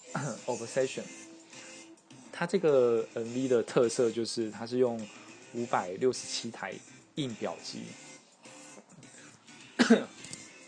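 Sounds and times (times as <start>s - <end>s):
speech: 0.5s - 1.3s, 2.4s - 8.0s, 9.9s - 10.2s
short cough: 9.8s - 10.2s.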